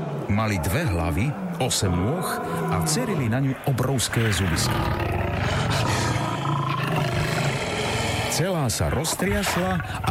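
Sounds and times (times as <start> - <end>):
speech: 0.3 - 5.9, 8.4 - 10.0
several lions roaring: 0.5 - 10.0.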